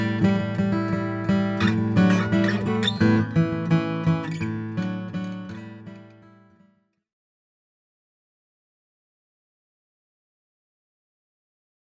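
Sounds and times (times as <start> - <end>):
mahogany acoustic guitar: 0.0 - 6.8.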